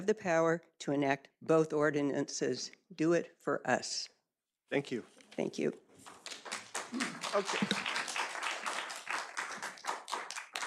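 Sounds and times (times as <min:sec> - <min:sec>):
speech: 0:00.0 - 0:05.8, 0:06.9 - 0:07.9
audience clapping: 0:06.0 - 0:10.6.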